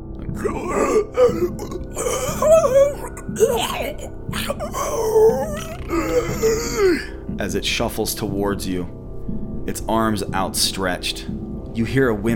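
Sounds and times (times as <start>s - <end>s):
voice imitating a monster's wet gurgling groans and belching: 0.4s - 7.1s
speech: 0.4s - 9.0s, 9.7s - 12.3s.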